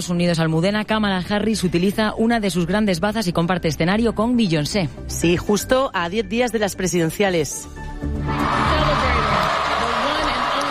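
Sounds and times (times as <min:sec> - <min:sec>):
speech: 0:00.0 - 0:09.6
large rally audience applauding and cheering: 0:08.1 - 0:10.7
whoops and shouting voices: 0:08.3 - 0:10.7.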